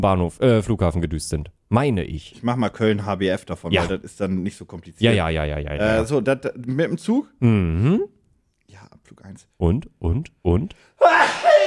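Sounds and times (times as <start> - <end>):
speech: 0.0 - 8.1, 8.7 - 11.4
person sneezing: 11.1 - 11.6.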